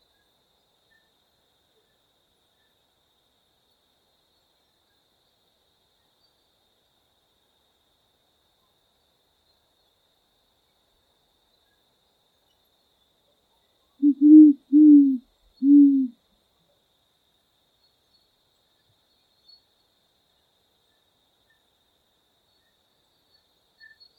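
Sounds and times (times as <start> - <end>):
jacurutu calling: 14.0 - 16.2.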